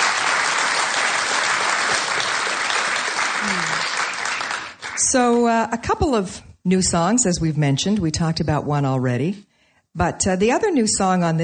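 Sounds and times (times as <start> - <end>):
audience applause: 0.0 - 5.1
speech: 5.1 - 11.4.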